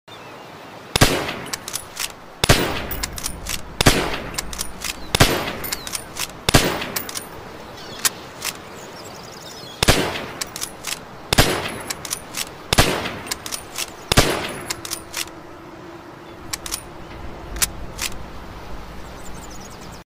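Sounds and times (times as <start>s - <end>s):
Arisaka rifle: 1.0s - 7.3s, 9.8s - 15.3s, 16.5s - 16.9s.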